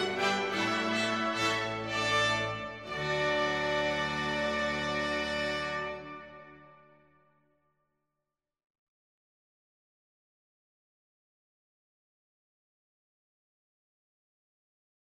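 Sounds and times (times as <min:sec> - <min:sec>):
hornpipe tune: 0:00.0 - 0:07.1.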